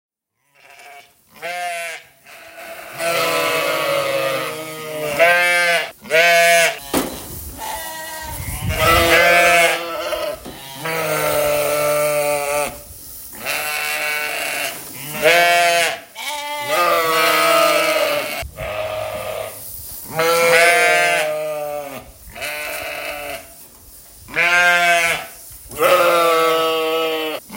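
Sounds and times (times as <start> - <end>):
noisy rustle: 0.3 - 27.5
sheep bleating: 0.4 - 7.0, 7.6 - 12.8, 13.4 - 23.5, 24.4 - 27.5.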